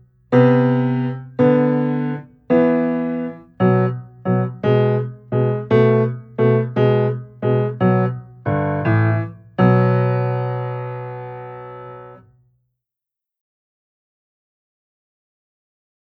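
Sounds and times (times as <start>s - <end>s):
piano exercises with fifths and sixths: 0.0s - 12.2s.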